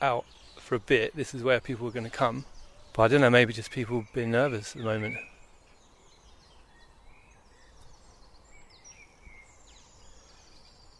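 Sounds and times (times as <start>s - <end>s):
speech: 0.0s - 5.3s
many birds singing outdoors: 0.0s - 10.9s.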